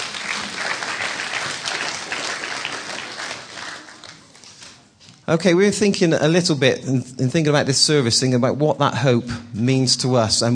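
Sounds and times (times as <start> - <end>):
audience clapping: 0.0 - 4.8
speech: 5.3 - 10.5.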